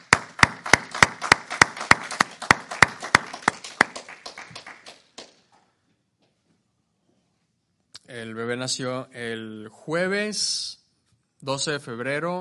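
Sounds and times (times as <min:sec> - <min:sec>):
audience applause: 0:00.0 - 0:05.3
speech: 0:08.2 - 0:10.8, 0:11.4 - 0:12.3.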